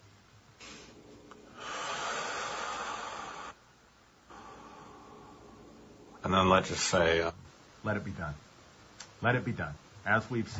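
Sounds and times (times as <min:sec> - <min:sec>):
deep breaths during a guided prayer session: 0:00.6 - 0:06.2
speech: 0:06.3 - 0:08.5, 0:09.2 - 0:10.5.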